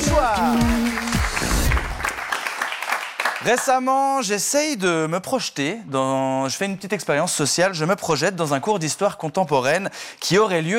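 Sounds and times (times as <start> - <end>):
audience clapping at a comedy night: 0.0 - 3.9
speech: 3.4 - 10.7.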